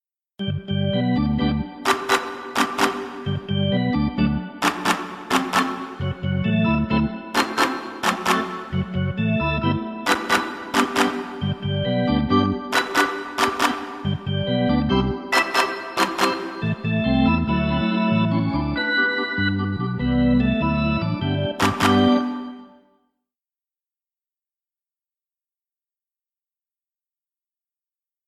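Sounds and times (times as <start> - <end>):
arena organ: 0.4 - 1.9, 2.6 - 4.6, 5.4 - 22.6.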